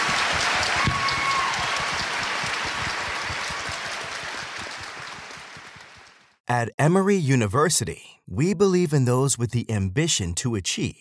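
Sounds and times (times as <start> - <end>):
audience applause: 0.0 - 6.4
speech: 6.5 - 10.9.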